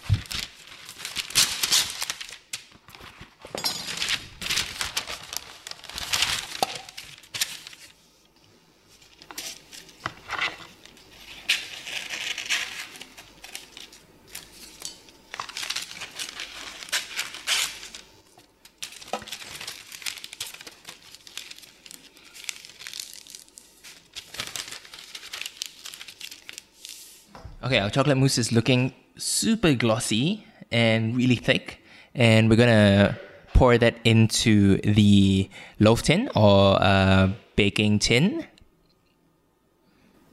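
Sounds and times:
baking paper crinkling: 0:00.0 - 0:08.1, 0:08.9 - 0:27.3
speech: 0:27.7 - 0:38.5.

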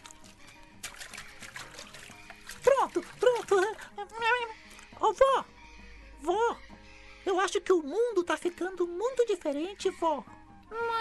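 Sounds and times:
water running while hands are washed: 0:00.0 - 0:05.4, 0:08.2 - 0:10.3
speech: 0:07.3 - 0:11.0.

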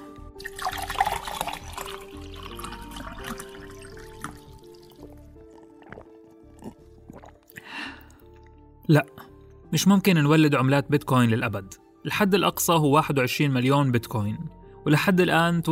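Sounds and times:
person drinking water: 0:00.4 - 0:08.7
soft gulps and swallows of water: 0:02.3 - 0:08.7
speech: 0:08.9 - 0:15.7.

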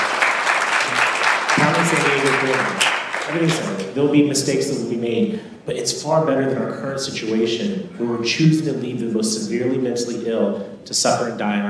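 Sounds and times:
audience applause: 0:00.0 - 0:03.8
speech: 0:01.8 - 0:11.6.

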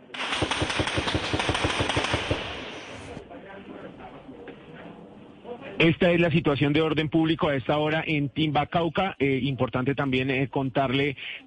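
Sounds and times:
gunfire during armed attacks: 0:00.0 - 0:03.2
speech: 0:05.8 - 0:11.4.

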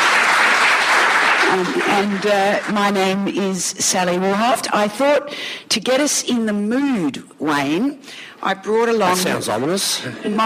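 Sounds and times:
audience clapping: 0:00.0 - 0:03.2
speech: 0:01.5 - 0:10.4.

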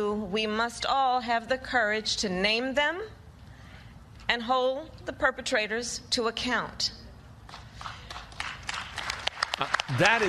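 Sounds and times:
speech: 0:00.0 - 0:03.2, 0:04.3 - 0:07.0, 0:09.6 - 0:10.2
smattering of applause: 0:07.5 - 0:10.2.

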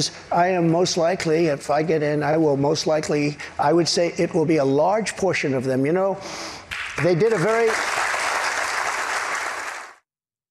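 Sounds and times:
speech: 0:00.0 - 0:08.1
audience applause in played recording: 0:06.7 - 0:10.0.

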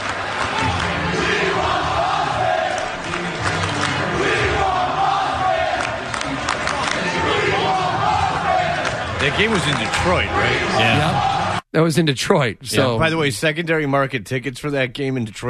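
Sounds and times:
basketball fans crowd cheering: 0:00.0 - 0:11.6
speech: 0:09.3 - 0:15.4.

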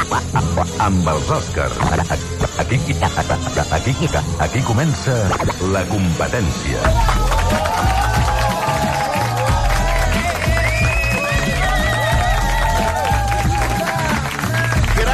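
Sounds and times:
laughter: 0:00.0 - 0:04.9, 0:06.8 - 0:15.1
speech: 0:00.2 - 0:07.9
studio audience applause: 0:06.8 - 0:15.1.

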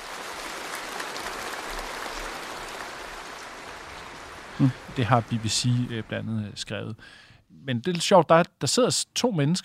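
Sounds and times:
large crowd applauding in a large hall: 0:00.0 - 0:06.1
speech: 0:04.6 - 0:09.6.

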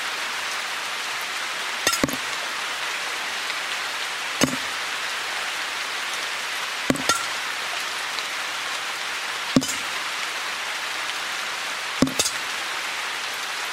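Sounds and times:
steady rain-like hiss: 0:00.0 - 0:13.7
water dripping from a roof leak onto a plate in June rainy season: 0:01.8 - 0:02.4, 0:04.4 - 0:04.8, 0:06.9 - 0:08.4, 0:09.5 - 0:10.2, 0:12.0 - 0:12.7.

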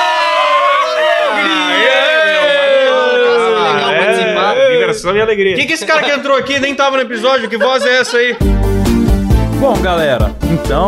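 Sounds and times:
group of people shouting together: 0:00.0 - 0:05.0
laughter: 0:01.2 - 0:09.1
speech: 0:05.0 - 0:08.7, 0:09.6 - 0:10.8.

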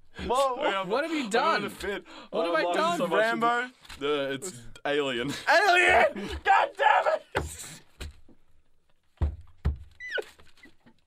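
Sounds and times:
speech: 0:00.3 - 0:07.8
hands banging on a table: 0:09.2 - 0:10.0.

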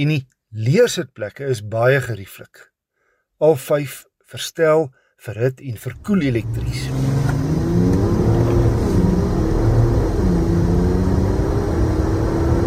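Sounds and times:
speech: 0:00.0 - 0:02.7, 0:03.4 - 0:07.3
3-litre turbo diesel engine revving: 0:05.9 - 0:12.6.

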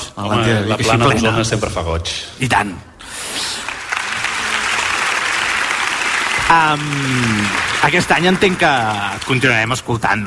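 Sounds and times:
speech: 0:00.2 - 0:03.2, 0:06.5 - 0:10.2
audience applause: 0:03.4 - 0:10.1.

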